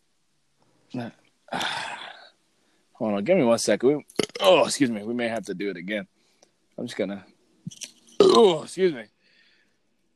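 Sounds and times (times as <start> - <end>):
speech: 0.9 - 1.7, 3.0 - 6.2, 6.8 - 9.2
person burping: 1.5 - 2.2, 4.1 - 4.7, 8.2 - 8.7.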